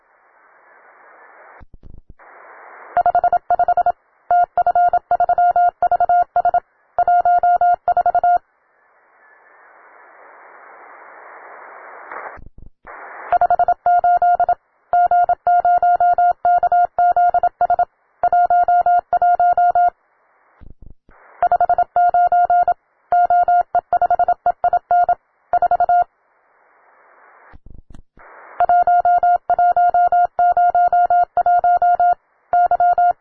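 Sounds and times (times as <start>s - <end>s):
CW sent by a beginner: 3.0s - 8.4s, 13.3s - 19.9s, 21.4s - 26.1s, 28.6s - 33.1s.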